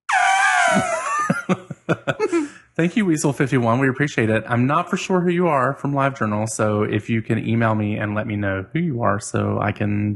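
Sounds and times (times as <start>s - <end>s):
elephant trumpeting sound effect: 0.1s - 1.0s
laughter: 0.1s - 3.0s
speech: 1.5s - 10.1s.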